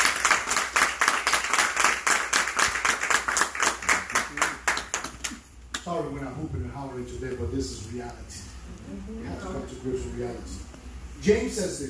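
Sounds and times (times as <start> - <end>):
audience applause: 0.0 - 5.4
speech: 5.9 - 11.8.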